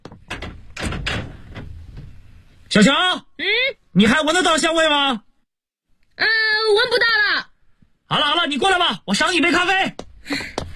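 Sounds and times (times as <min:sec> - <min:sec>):
corridor window knocks and thuds: 0:00.0 - 0:02.2
corridor window scraping and rattling as it slides open: 0:00.0 - 0:02.6
speech: 0:02.7 - 0:05.2, 0:06.2 - 0:07.2, 0:08.1 - 0:10.6.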